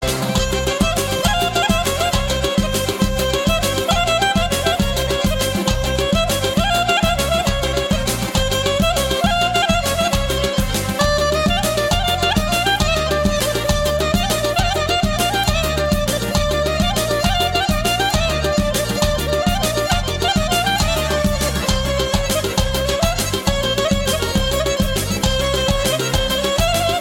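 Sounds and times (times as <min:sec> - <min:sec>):
Armenian clarinet: 0:00.0 - 0:26.9.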